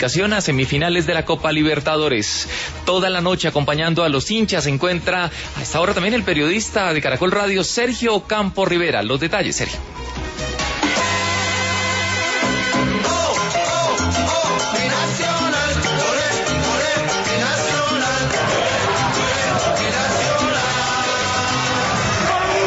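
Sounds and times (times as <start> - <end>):
speech: 0.0 - 10.5
football fans cheering outside stadium: 10.9 - 22.6.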